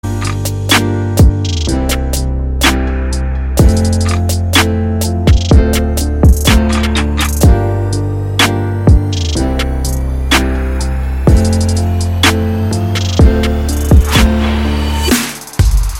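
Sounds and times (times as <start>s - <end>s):
instrumental ringtone music: 0.1s - 15.8s.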